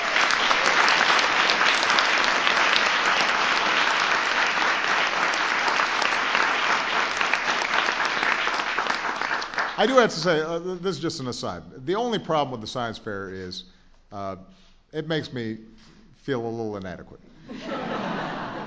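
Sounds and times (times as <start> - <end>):
audience applause: 0.0 - 10.3
speech: 9.8 - 18.1
laughter: 17.4 - 18.6.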